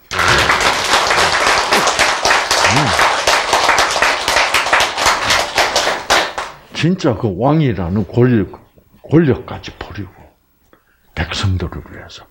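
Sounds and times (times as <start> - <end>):
audience clapping: 0.0 - 6.6
speech: 6.8 - 10.2, 11.2 - 12.2.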